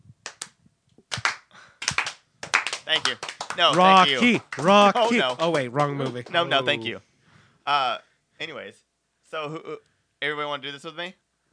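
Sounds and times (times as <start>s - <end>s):
80s-style drum machine handclaps: 0.3s - 6.5s
speech: 2.9s - 7.1s, 7.7s - 11.2s.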